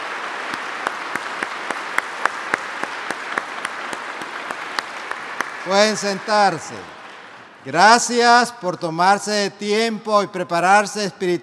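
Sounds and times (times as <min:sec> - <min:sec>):
audience applause: 0:00.0 - 0:07.7
speech: 0:05.7 - 0:07.0, 0:07.6 - 0:11.4.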